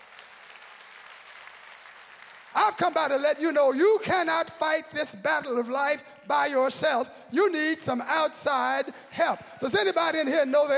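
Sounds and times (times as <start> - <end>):
audience clapping hands: 0.0 - 3.5
speech: 2.6 - 10.7.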